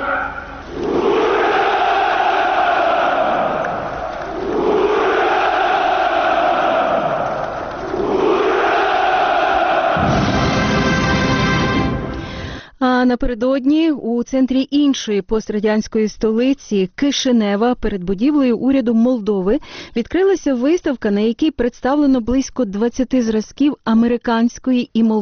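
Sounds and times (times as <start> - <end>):
large crowd shouting Hurrah at a Victory Day celebration: 0.0 - 12.0
speech: 13.1 - 25.1.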